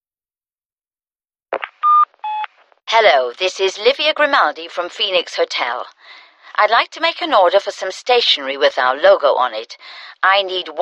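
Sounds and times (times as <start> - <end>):
company answering machine electronic beep: 1.8 - 2.5
speech: 2.9 - 10.8.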